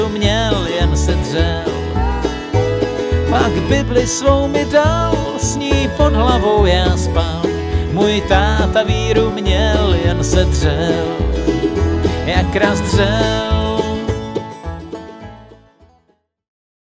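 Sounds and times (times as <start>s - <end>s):
autoharp playing: 0.0s - 15.8s.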